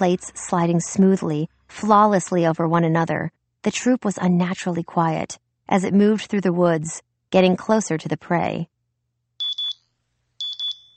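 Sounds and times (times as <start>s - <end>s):
speech: 0.0s - 8.7s
high-pitched electronic beeps from a wrist screen: 9.4s - 9.8s, 10.4s - 10.9s.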